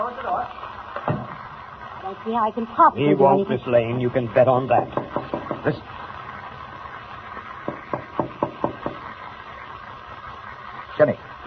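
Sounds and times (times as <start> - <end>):
speech: 0.0 - 1.2, 2.0 - 5.0, 5.6 - 5.9
knocking on a door: 4.8 - 5.7, 7.7 - 9.0.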